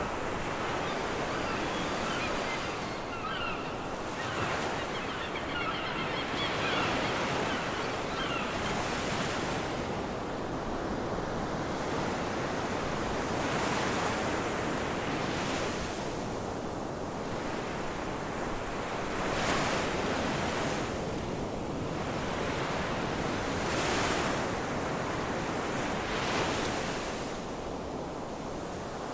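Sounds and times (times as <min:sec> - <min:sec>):
ocean waves on the beach: 0:00.0 - 0:29.1
seagulls calling on the beach: 0:00.4 - 0:09.5.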